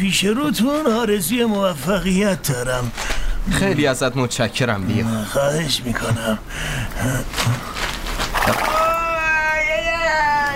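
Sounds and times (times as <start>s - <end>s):
speech: 0.0s - 7.7s, 8.5s - 8.8s
monkey screaming: 8.4s - 10.4s.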